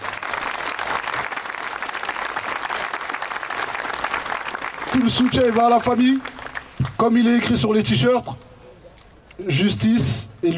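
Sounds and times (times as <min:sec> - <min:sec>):
audience applause: 0:00.0 - 0:06.9
speech: 0:05.0 - 0:08.4, 0:09.4 - 0:10.5.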